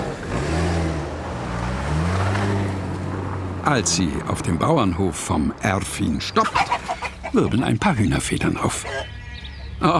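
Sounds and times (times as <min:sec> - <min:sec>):
taxi engine revving and accelerating: 0:00.0 - 0:04.0
speech: 0:03.7 - 0:06.7, 0:07.3 - 0:09.1, 0:09.8 - 0:09.9.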